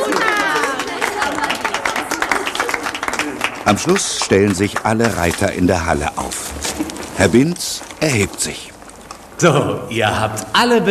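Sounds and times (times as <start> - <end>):
crowd murmur: 0.0 - 3.7
audience clapping in an indoor riding hall: 0.0 - 7.4
speech: 3.7 - 8.7, 9.4 - 10.8.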